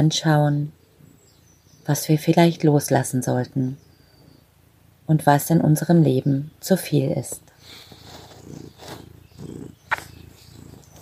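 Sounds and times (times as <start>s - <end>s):
speech: 0.0s - 0.8s, 1.8s - 3.8s, 5.1s - 7.9s
cat purring: 3.0s - 10.9s.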